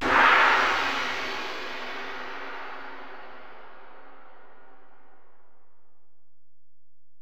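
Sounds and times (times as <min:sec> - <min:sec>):
Alesis DM-PRO drum machine ride cymbal: 0:00.0 - 0:04.0.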